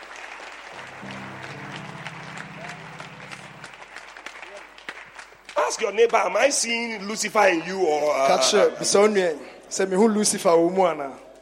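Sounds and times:
audience clapping: 0:00.0 - 0:06.9
speech: 0:05.7 - 0:11.2.

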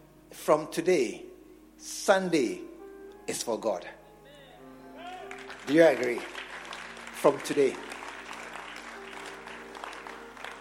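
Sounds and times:
speech: 0:00.5 - 0:02.7, 0:03.3 - 0:04.0, 0:05.7 - 0:06.4, 0:07.2 - 0:07.9
group clapping at the back of the room: 0:05.0 - 0:10.5.

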